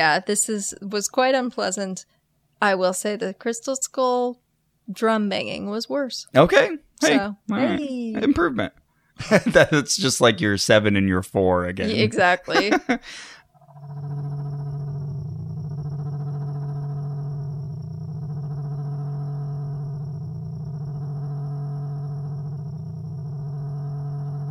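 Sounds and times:
speech: 0:00.0 - 0:14.2
laughter: 0:07.0 - 0:10.5, 0:11.8 - 0:13.4
brain-stimulating frequency tones drone: 0:13.5 - 0:24.5.

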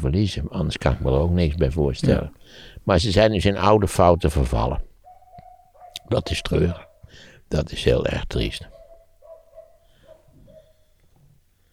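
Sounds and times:
speech: 0:00.0 - 0:04.9, 0:06.1 - 0:08.8
two dogs yelping while scuffling: 0:03.9 - 0:07.1, 0:08.7 - 0:10.9.

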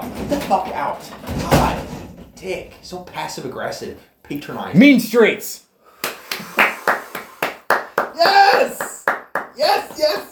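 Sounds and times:
speech: 0:00.3 - 0:01.8, 0:02.4 - 0:05.6, 0:08.2 - 0:09.0, 0:09.6 - 0:10.3
audience applause: 0:06.0 - 0:10.0.

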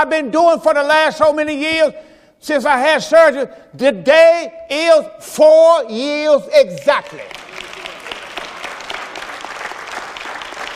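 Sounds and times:
speech: 0:00.0 - 0:07.4
brief audience hand clapping: 0:06.8 - 0:10.7.

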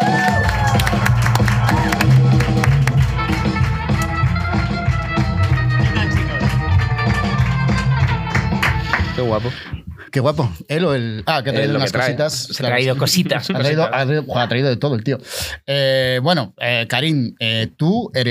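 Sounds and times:
audience applause for a guest: 0:00.0 - 0:09.4
speech: 0:09.4 - 0:18.2.

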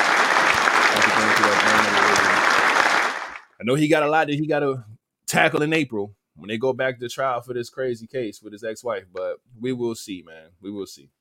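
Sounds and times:
round of applause: 0:00.0 - 0:03.5
speech: 0:03.6 - 0:11.1.

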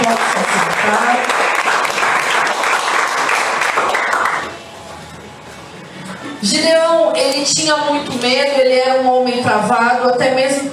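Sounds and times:
audience applause: 0:00.0 - 0:04.6
speech: 0:07.4 - 0:10.7.

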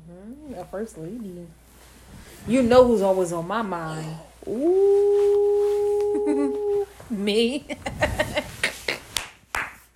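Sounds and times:
speech: 0:00.1 - 0:08.4
hands clapping: 0:09.1 - 0:09.9.

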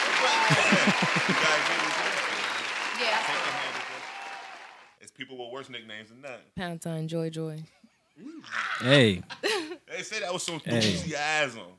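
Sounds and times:
voices cheering: 0:00.0 - 0:04.9, 0:10.7 - 0:11.1
audience applause: 0:00.0 - 0:05.0
laughter: 0:00.2 - 0:02.5, 0:08.2 - 0:09.9, 0:10.7 - 0:11.1
speech: 0:05.2 - 0:11.7.

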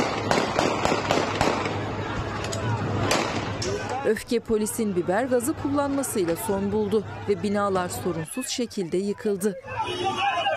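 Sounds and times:
gunshots fired into the air: 0:00.0 - 0:01.8, 0:03.0 - 0:03.6
speech: 0:04.1 - 0:10.4.

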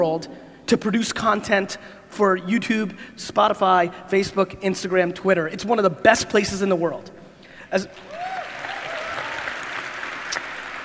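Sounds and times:
speech: 0:00.0 - 0:08.1
audience clapping: 0:07.9 - 0:10.8.

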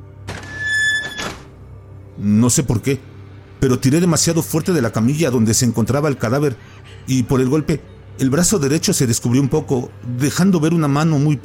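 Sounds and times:
rusty metal door creaking open: 0:00.2 - 0:01.6
speech: 0:02.2 - 0:11.4.

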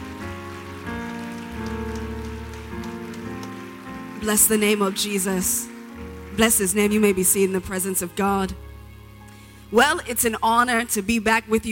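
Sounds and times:
audience applauding: 0:00.0 - 0:08.1
organ or keyboard chords: 0:00.0 - 0:10.5
speech: 0:04.2 - 0:05.7, 0:06.4 - 0:08.6, 0:09.7 - 0:11.6.

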